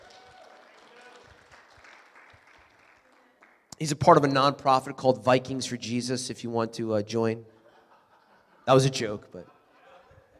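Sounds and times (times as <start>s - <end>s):
audience applause: 0.0s - 3.6s
speech: 3.8s - 7.5s, 8.7s - 9.5s
laughter: 7.5s - 10.3s.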